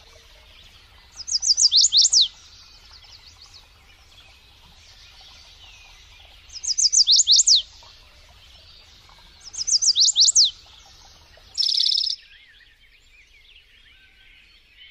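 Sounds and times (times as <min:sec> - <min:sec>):
lovebird twittering: 0:01.2 - 0:03.6, 0:06.5 - 0:07.7, 0:09.5 - 0:10.6, 0:11.5 - 0:12.2.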